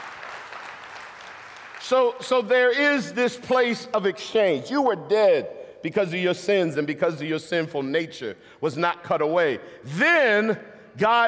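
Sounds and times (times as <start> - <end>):
audience applause: 0.0 - 2.2
speech: 1.9 - 11.2.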